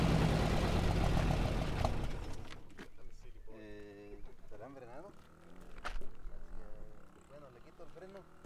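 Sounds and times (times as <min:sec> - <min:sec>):
car starting and stopping: 0:00.0 - 0:02.7.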